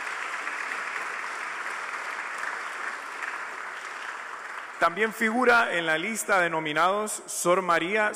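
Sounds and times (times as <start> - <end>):
applause: 0.0 - 6.2
speech: 4.8 - 8.1.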